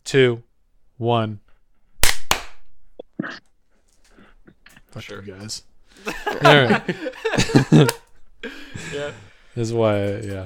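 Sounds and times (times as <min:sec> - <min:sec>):
speech: 0:00.1 - 0:01.4, 0:03.2 - 0:03.5, 0:04.9 - 0:10.4
hand clap for sync: 0:02.0 - 0:02.6, 0:07.8 - 0:08.0
laughter: 0:05.9 - 0:09.3.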